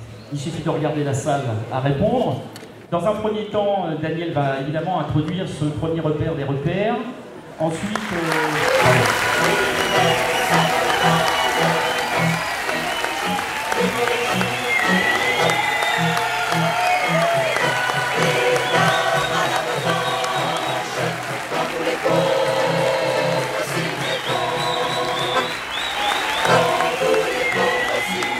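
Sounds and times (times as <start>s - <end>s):
speech: 0.3s - 11.3s
audience in a hall singing a song together: 8.9s - 28.3s.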